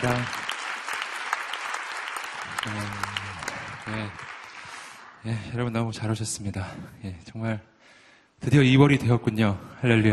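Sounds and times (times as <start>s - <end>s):
speech: 0.0s - 0.4s, 2.6s - 3.2s, 3.9s - 4.3s, 5.2s - 7.7s, 8.4s - 10.1s
audience applause: 0.0s - 5.2s.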